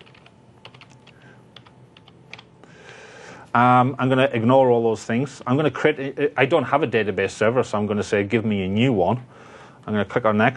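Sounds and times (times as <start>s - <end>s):
fast light typing of a database name on a computer keyboard: 0.0s - 2.5s
faint hiss: 0.0s - 10.5s
speech: 3.6s - 10.5s.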